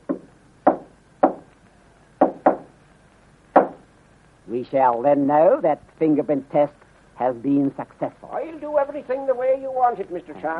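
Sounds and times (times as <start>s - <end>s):
knocking on a wooden door: 0.1s - 1.4s, 2.2s - 2.7s
speech: 4.5s - 10.5s.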